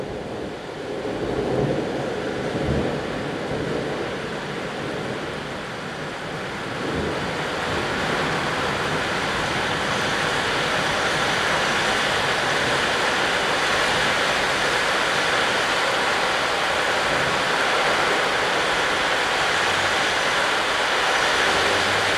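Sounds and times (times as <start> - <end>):
rain: 0.0 - 22.1.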